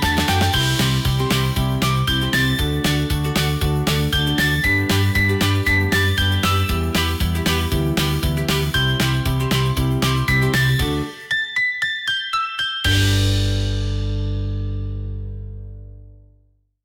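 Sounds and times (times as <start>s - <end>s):
upbeat positive good morning music: 0.0s - 15.6s.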